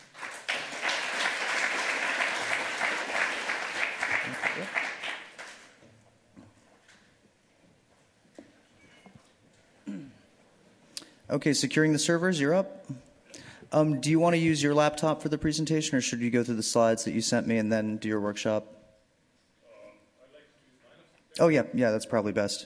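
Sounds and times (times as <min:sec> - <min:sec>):
round of applause: 0:00.0 - 0:05.8
speech: 0:11.3 - 0:13.1, 0:13.7 - 0:18.8, 0:21.4 - 0:22.6.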